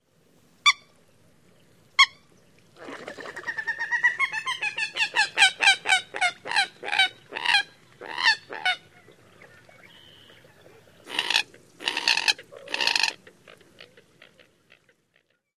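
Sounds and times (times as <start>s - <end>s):
bird keek calls: 3.2s - 15.5s.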